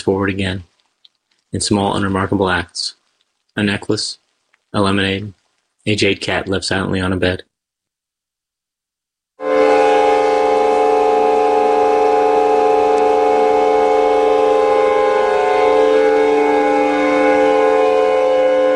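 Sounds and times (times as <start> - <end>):
speech: 0.0 - 0.7, 1.5 - 3.0, 3.6 - 7.5
sustained chord from a very long song: 9.4 - 18.7.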